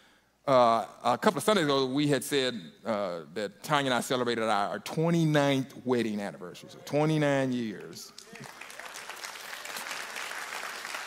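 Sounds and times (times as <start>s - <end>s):
speech: 0.5s - 8.6s
audience applause: 7.8s - 11.0s.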